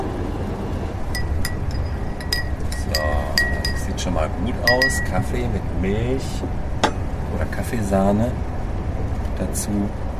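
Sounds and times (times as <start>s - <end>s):
steady low rumbling hum: 0.0s - 9.3s
dishes and glass clinking as breakfast is served on night train: 1.2s - 4.0s, 4.6s - 5.3s
speech: 4.0s - 6.6s, 7.4s - 8.5s, 9.4s - 10.0s.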